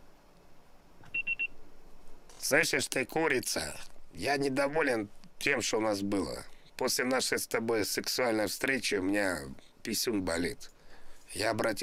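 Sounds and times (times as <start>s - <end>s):
faint hiss: 0.0s - 11.8s
short high-pitched voicemail recording beeps: 1.1s - 1.6s
speech: 2.5s - 10.7s, 11.3s - 11.8s.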